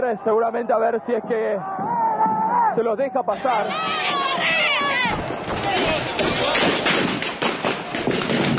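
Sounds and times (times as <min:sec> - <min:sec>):
speech: 0:00.1 - 0:01.9, 0:02.7 - 0:06.7
gunshots: 0:05.1 - 0:08.5.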